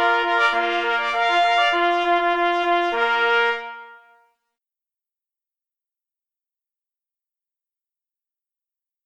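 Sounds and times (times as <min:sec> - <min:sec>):
march music: 0:00.0 - 0:04.2.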